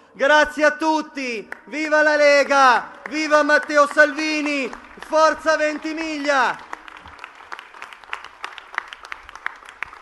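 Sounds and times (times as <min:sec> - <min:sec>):
speech: 0:00.2 - 0:06.7
crowd applause at a political rally: 0:03.0 - 0:10.0.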